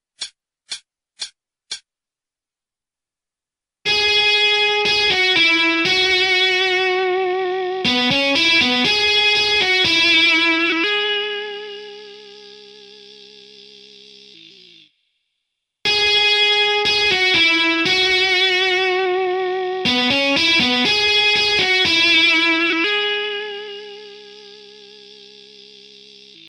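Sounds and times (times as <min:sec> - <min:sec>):
intro music: 0:03.9 - 0:12.6, 0:15.9 - 0:25.8.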